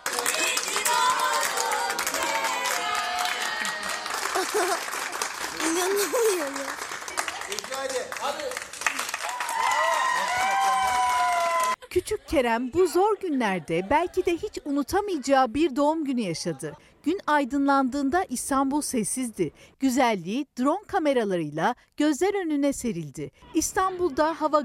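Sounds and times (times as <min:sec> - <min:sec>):
applause from balconies: 0:00.0 - 0:11.8
birthday cheers from balconies: 0:00.0 - 0:11.8
laughter: 0:03.4 - 0:06.7, 0:11.5 - 0:15.5, 0:16.2 - 0:16.8
speech: 0:05.8 - 0:06.8, 0:07.5 - 0:08.7, 0:12.0 - 0:24.6.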